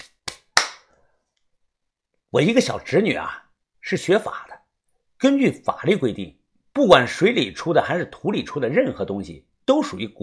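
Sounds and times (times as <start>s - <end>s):
hands clapping together to dust off: 0.0s - 0.9s
speech: 2.3s - 4.5s, 5.2s - 10.2s.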